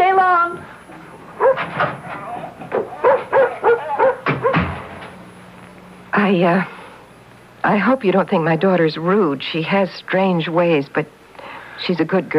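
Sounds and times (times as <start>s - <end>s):
dog barking and yipping: 1.4s - 1.8s, 2.8s - 4.6s
speech: 6.3s - 6.8s, 7.6s - 11.2s, 11.8s - 12.3s.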